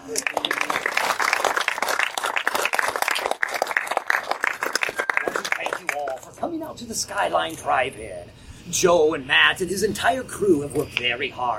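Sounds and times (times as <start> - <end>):
audience applause: 0.0 - 6.3
speech: 6.8 - 11.5.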